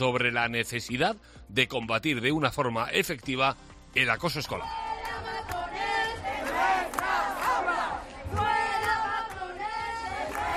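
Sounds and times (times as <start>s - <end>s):
speech: 0.0s - 4.8s
protest crowd chanting slogan: 4.6s - 10.5s.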